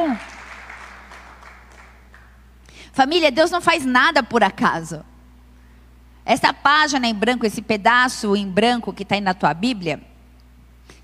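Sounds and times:
audience applause: 0.0s - 2.4s
speech: 2.9s - 5.1s, 6.3s - 10.1s.

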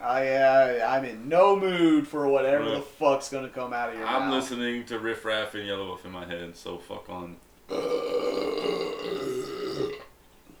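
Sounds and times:
speech: 0.1s - 8.6s
loud burp: 7.7s - 10.2s.

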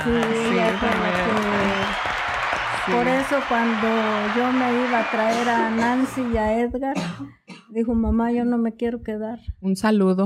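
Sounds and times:
speech: 0.0s - 1.1s, 2.9s - 10.2s
crowd applause: 0.0s - 6.6s.

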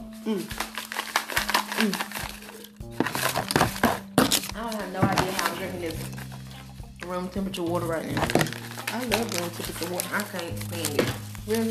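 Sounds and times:
person biting and chewing an apple: 0.0s - 4.6s
speech: 0.2s - 0.7s, 1.8s - 2.2s, 4.6s - 6.2s, 7.1s - 11.7s.

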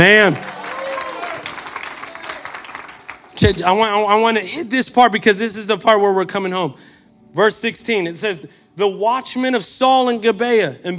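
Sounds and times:
speech: 0.0s - 0.5s, 3.4s - 10.9s
audience cheering: 0.0s - 3.0s
audience applause: 0.0s - 3.4s.

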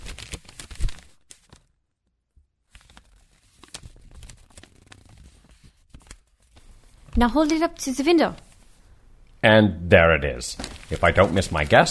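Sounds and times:
thin tracing paper rustling: 0.0s - 1.8s, 2.7s - 7.3s, 10.6s - 11.8s
speech: 7.2s - 8.4s, 9.4s - 11.8s.

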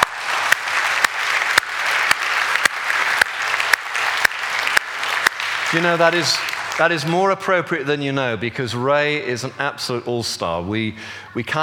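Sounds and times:
audience applause: 0.0s - 7.5s
speech: 5.7s - 11.6s.

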